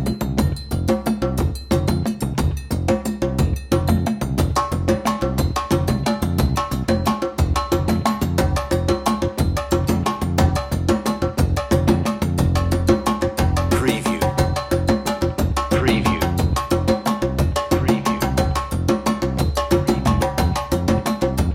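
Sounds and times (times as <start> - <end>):
bass: 0.0 - 21.5
drums: 0.0 - 21.5.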